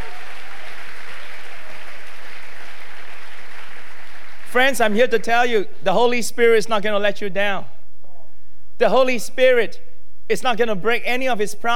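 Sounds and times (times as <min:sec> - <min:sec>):
audience clapping: 0:00.0 - 0:05.6
speech: 0:04.6 - 0:07.7, 0:08.8 - 0:11.7.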